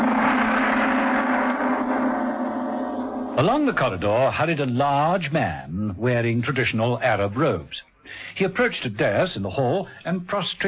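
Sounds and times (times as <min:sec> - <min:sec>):
gong crash: 0:00.0 - 0:04.5
speech: 0:03.4 - 0:10.6.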